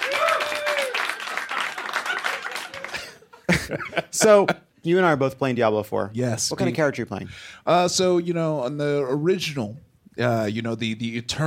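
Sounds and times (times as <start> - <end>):
audience applause: 0.0 - 3.3
laughter: 1.3 - 4.7
speech: 3.7 - 11.4.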